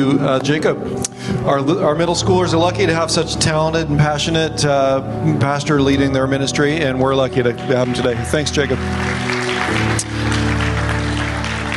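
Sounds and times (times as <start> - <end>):
speech: 0.0 - 10.1
audience clapping: 7.3 - 11.7.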